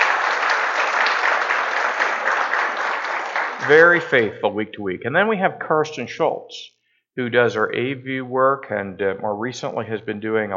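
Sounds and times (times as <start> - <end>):
audience applause: 0.0 - 4.4
speech: 3.7 - 10.5.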